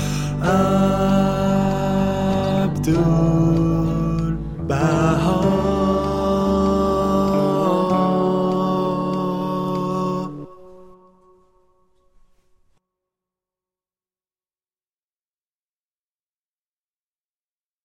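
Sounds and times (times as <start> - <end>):
tenor singing: 0.0 - 11.7
choral music: 0.0 - 12.7.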